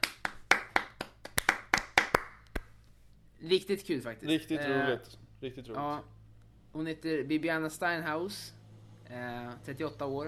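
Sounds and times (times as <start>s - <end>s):
hand clapping applause: 0.0s - 2.8s
speech: 3.4s - 6.2s, 6.8s - 10.2s.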